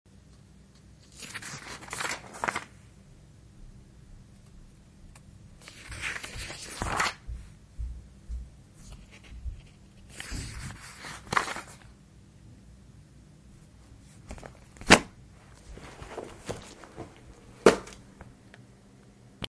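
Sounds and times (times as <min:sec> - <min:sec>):
page turns: 0:01.0 - 0:02.8, 0:05.6 - 0:07.3, 0:08.9 - 0:11.9, 0:14.0 - 0:18.0.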